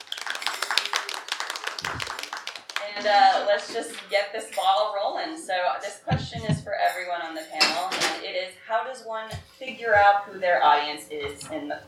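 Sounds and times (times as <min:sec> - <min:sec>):
audience applause: 0:00.0 - 0:02.9
speech: 0:03.0 - 0:11.8.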